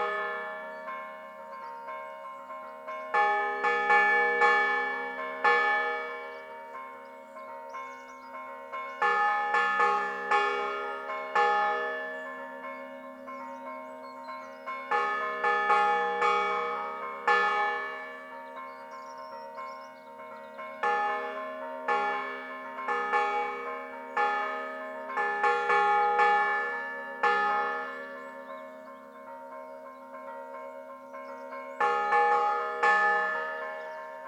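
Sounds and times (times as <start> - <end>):
church bells ringing in San Gregorio di Stellanello, Liguria: 0.0 - 34.2.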